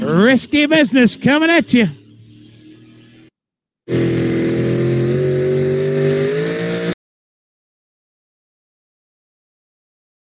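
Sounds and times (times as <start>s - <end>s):
drag racing truck engine roaring launching off the line: 0.0s - 3.3s, 3.9s - 7.0s
speech: 0.1s - 2.0s.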